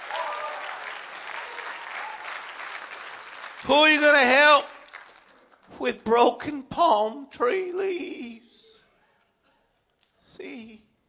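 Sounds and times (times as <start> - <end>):
crowd clapping: 0.0 - 5.9
speech: 3.6 - 4.7, 5.8 - 8.4.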